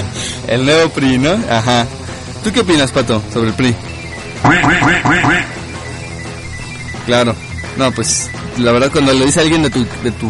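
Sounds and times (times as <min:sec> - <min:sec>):
speech: 0:00.5 - 0:05.6, 0:07.1 - 0:10.2
duck quacking: 0:04.4 - 0:05.7.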